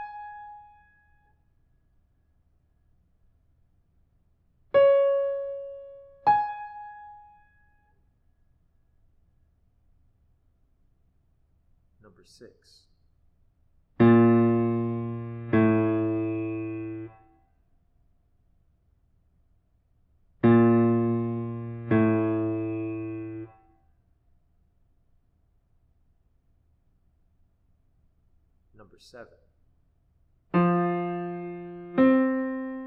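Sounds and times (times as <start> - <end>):
musical intervals: 4.8 - 7.1, 14.0 - 17.2, 20.5 - 23.5, 30.6 - 32.8.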